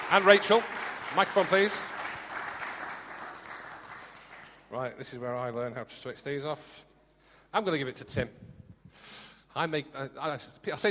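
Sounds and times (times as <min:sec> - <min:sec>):
round of applause: 0:00.0 - 0:04.8
speech: 0:00.1 - 0:02.0, 0:04.7 - 0:06.9, 0:07.5 - 0:09.0, 0:09.6 - 0:10.9.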